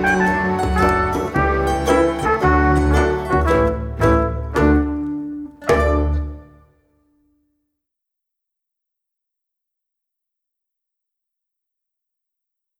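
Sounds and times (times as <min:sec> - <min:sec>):
piano: 0:00.0 - 0:06.6
mandolin playing andante con variazioni in D major: 0:00.0 - 0:06.8.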